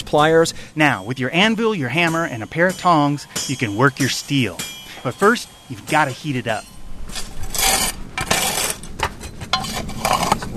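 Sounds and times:
speech: 0.1s - 7.2s
scraping black coal into a rectangular metal furnace: 2.9s - 10.5s.

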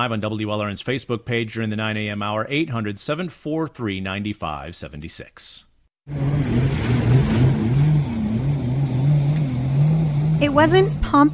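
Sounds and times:
speech: 0.0s - 6.6s, 10.4s - 11.3s
jet ski engines roaring: 6.1s - 11.3s.

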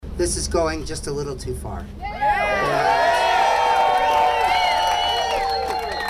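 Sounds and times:
speech: 0.2s - 2.9s
crowd gathered outside shouting and cheering: 2.0s - 6.0s.

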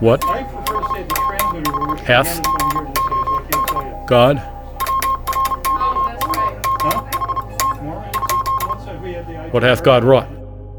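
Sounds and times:
speech: 0.0s - 0.5s, 2.1s - 2.6s, 4.1s - 4.5s, 9.5s - 10.3s
sharp repeated telegraph clicks: 0.0s - 10.3s
Morse code telegraph signal beeping: 0.0s - 10.4s.

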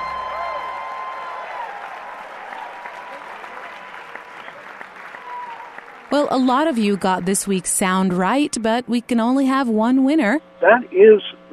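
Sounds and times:
audience clapping along to a theme song: 0.0s - 8.6s
speech: 6.1s - 11.5s.

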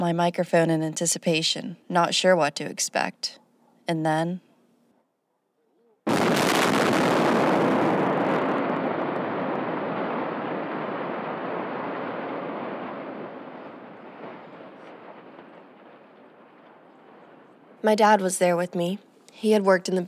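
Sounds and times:
speech: 0.0s - 4.5s, 17.8s - 20.0s
roaring crackling rumble of building collapse: 6.1s - 17.8s
building implosion demolition blast: 6.1s - 17.9s.

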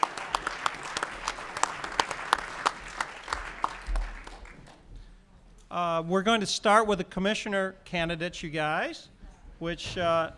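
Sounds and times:
small audience clapping at a candidate forum: 0.0s - 4.8s
speech: 5.8s - 10.3s.

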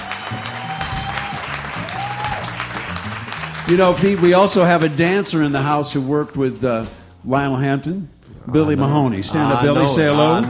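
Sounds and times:
audience applause: 0.0s - 5.3s
speech: 3.7s - 10.4s.

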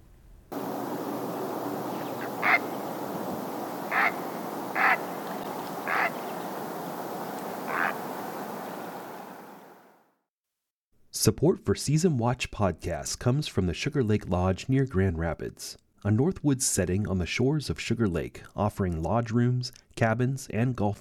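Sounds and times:
great blue heron call: 0.6s - 9.8s
speech: 11.2s - 20.9s.

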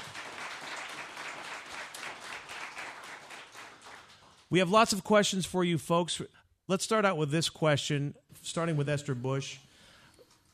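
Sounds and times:
audience applause for panelists: 0.0s - 4.5s
speech: 4.5s - 9.7s.

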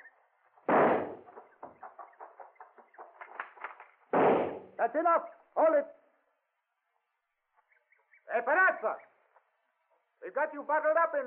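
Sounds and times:
gunshots fired at a tunnel: 0.7s - 1.3s, 4.1s - 4.8s
speech: 4.8s - 6.0s, 8.4s - 9.1s, 10.3s - 11.2s.

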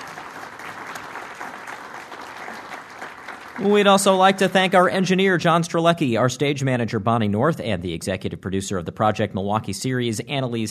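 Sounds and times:
audience applause: 0.0s - 5.4s
speech: 3.6s - 10.6s.

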